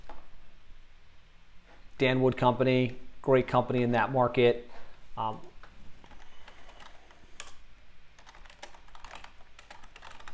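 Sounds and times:
speech: 2.0s - 5.5s
fingers typing a search query on a computer keyboard: 6.0s - 7.6s, 8.2s - 10.3s.

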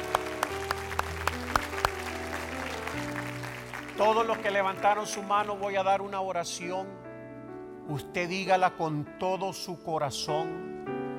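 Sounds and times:
church audience rhythmic clapping: 0.0s - 5.2s
speech: 4.0s - 7.0s, 7.9s - 10.7s.

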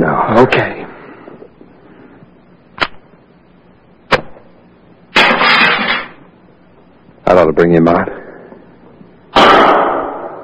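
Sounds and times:
speech: 0.3s - 0.8s, 7.4s - 8.2s
pistol shot: 4.1s - 4.5s, 5.1s - 6.0s, 9.3s - 10.4s.

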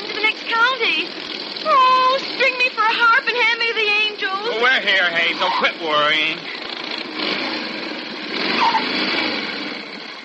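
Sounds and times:
brakes squealing: 0.0s - 10.2s
motorcycle engine buzzing: 0.0s - 10.2s
speech: 4.8s - 6.6s, 8.6s - 9.6s.

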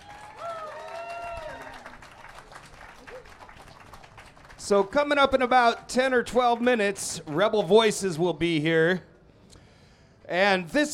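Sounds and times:
bright sustained cheer or whoop: 0.0s - 1.9s
audience applause: 0.0s - 6.7s
speech: 4.7s - 9.1s, 10.3s - 10.9s.

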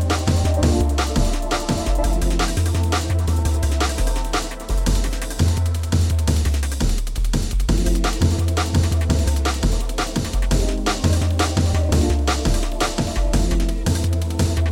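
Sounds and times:
sub bass: 0.0s - 14.7s.

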